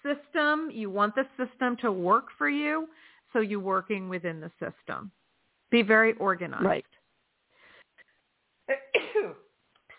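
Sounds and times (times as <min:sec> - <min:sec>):
speech: 0:00.6 - 0:07.0
person sneezing: 0:08.9 - 0:09.9.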